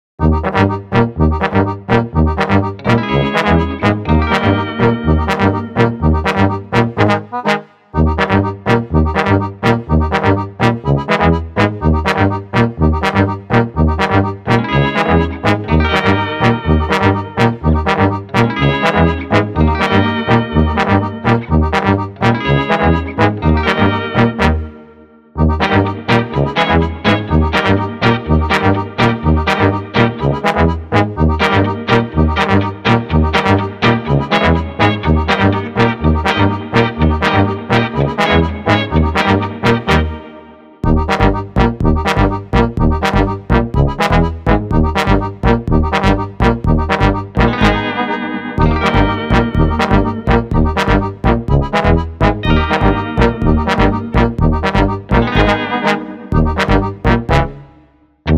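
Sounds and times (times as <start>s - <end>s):
Balkan brass dance underscore: 0.2s - 58.3s.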